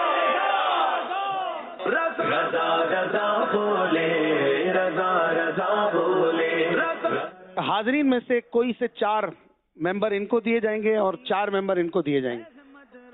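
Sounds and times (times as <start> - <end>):
crowd at a Mawlid religious gathering chanting a religious slogan: 0.0 - 7.4
speech: 1.9 - 12.5.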